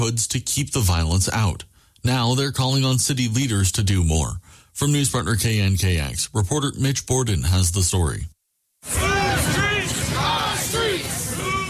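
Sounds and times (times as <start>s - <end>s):
speech: 0.0s - 9.0s
large crowd marching and chanting on North Aurora Avenue: 8.8s - 11.6s.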